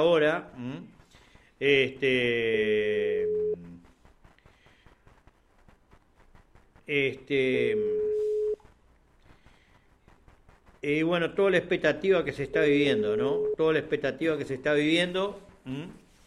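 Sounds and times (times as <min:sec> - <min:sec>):
speech: 0:00.0 - 0:01.0, 0:01.6 - 0:03.6, 0:06.9 - 0:08.1, 0:10.8 - 0:16.0
telephone ringback tone: 0:03.0 - 0:03.6, 0:07.7 - 0:08.6, 0:13.2 - 0:13.6.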